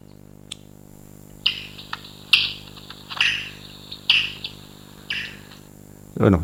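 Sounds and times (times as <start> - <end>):
bat chirp: 1.4 - 5.7.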